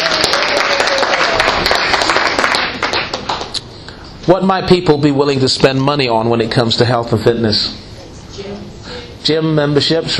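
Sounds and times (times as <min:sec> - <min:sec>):
audience applause: 0:00.0 - 0:03.6
speech: 0:04.3 - 0:07.8, 0:09.2 - 0:10.1.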